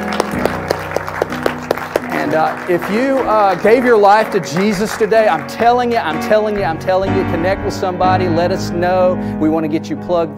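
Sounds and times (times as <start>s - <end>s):
audience hand clapping: 0.0s - 6.9s
speech: 2.3s - 10.3s.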